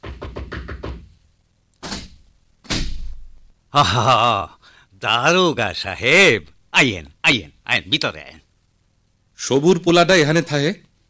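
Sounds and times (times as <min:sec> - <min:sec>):
knocking on a door: 0:00.0 - 0:01.1
speech: 0:03.7 - 0:08.4, 0:09.4 - 0:10.9.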